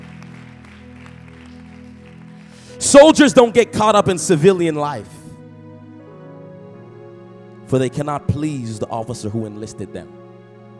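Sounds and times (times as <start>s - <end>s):
crowd audience clapping hands: 0.0s - 3.2s
speech: 2.8s - 5.2s, 7.7s - 10.2s.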